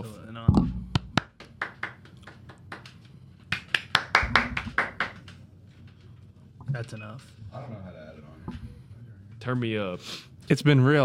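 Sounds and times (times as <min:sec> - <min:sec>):
clapping: 0:01.0 - 0:05.4
speech: 0:06.9 - 0:08.4, 0:09.4 - 0:11.0.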